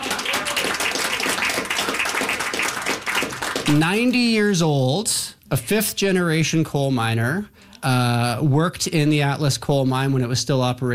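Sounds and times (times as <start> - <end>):
audience applause: 0.0 - 4.0
speech: 3.7 - 10.9.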